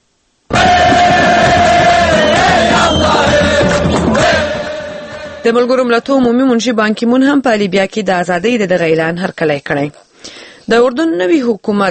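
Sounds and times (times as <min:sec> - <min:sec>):
crowd cheering Libya's declaration of liberation: 0:00.5 - 0:05.8
speech: 0:05.4 - 0:11.8.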